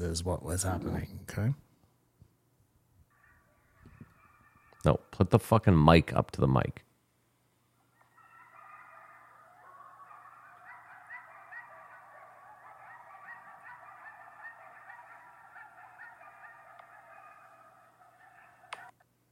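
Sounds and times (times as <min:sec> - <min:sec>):
speech: 0:00.0 - 0:01.6, 0:04.8 - 0:06.8
pack of coyotes howling near house: 0:03.1 - 0:05.2, 0:07.8 - 0:19.0.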